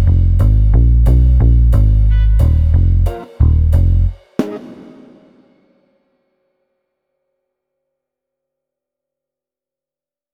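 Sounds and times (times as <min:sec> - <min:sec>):
noirsploitation funk music from vinyl: 0:00.0 - 0:05.5.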